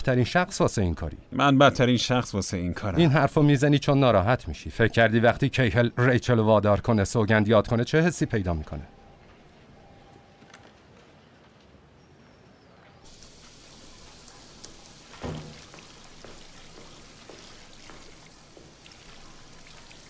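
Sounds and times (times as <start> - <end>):
speech: 0.0 - 9.0
running water while hands are washed: 13.1 - 20.0.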